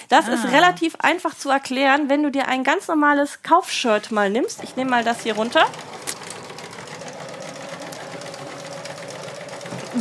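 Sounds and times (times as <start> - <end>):
speech: 0.1 - 6.1
sewing machine stitching: 4.4 - 9.9.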